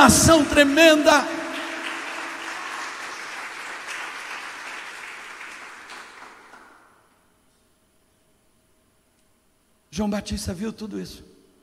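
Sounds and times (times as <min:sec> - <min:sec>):
speech: 0:00.0 - 0:01.4, 0:10.0 - 0:11.3
loud audience applause: 0:00.0 - 0:07.0.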